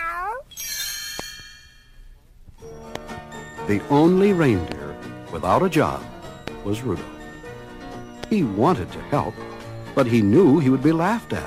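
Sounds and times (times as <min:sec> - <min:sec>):
kitten meows: 0:00.0 - 0:00.5
bright bell-like chime: 0:00.5 - 0:02.2
speech: 0:03.7 - 0:07.2, 0:08.3 - 0:11.4.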